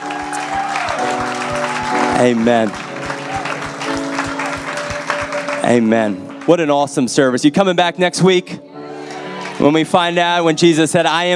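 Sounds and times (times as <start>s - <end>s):
audience applause: 0.0s - 6.7s, 8.9s - 10.5s
speech: 2.2s - 2.9s, 5.6s - 8.6s, 9.6s - 11.3s.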